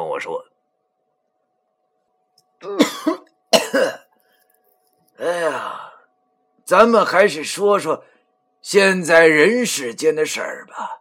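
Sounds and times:
speech: 0.2 - 0.5, 2.6 - 4.0, 5.2 - 5.8, 6.7 - 10.9
cough: 2.6 - 4.1.

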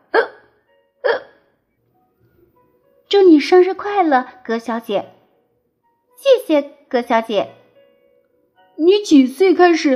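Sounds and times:
person voicing loud hiccups: 0.0 - 1.4
speech: 3.1 - 5.2, 6.2 - 7.6, 8.8 - 9.9.

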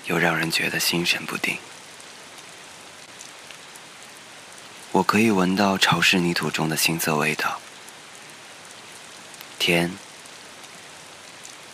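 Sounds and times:
rain falling on dark concrete slabs: 0.0 - 11.7
speech: 0.1 - 1.8, 4.9 - 7.7, 9.6 - 10.0.

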